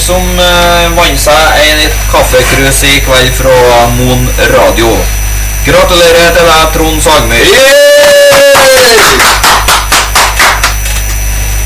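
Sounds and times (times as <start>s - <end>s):
steady low hum: 0.0s - 9.0s
speech: 0.1s - 8.0s, 8.9s - 9.5s
two people clapping: 7.8s - 11.2s.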